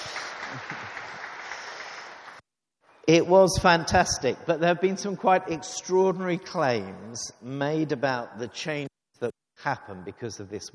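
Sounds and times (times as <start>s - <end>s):
audience applause for the Lionesses' European Championship win: 0.0s - 2.4s
speech: 3.1s - 10.7s.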